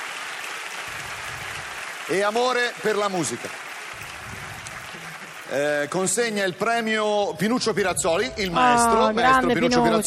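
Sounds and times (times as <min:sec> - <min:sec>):
large crowd applauding: 0:00.0 - 0:06.9
speech: 0:02.1 - 0:03.6, 0:05.5 - 0:10.0.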